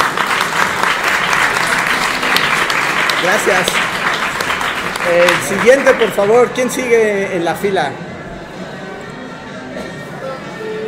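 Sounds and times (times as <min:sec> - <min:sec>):
audience applause: 0:00.0 - 0:06.6
speech: 0:03.2 - 0:03.9, 0:05.0 - 0:08.0.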